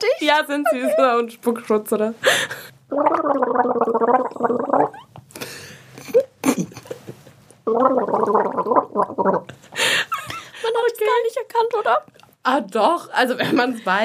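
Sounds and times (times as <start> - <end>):
speech: 0.0 - 5.7, 7.7 - 10.0, 10.7 - 14.0
gargling: 2.9 - 5.1, 7.6 - 9.5.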